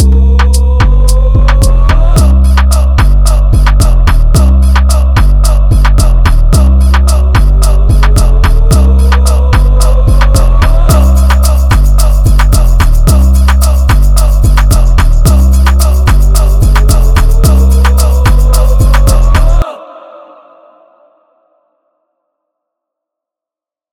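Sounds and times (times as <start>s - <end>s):
upbeat Latin Caribbean hip hop dance beat in C minor: 0.0s - 19.6s.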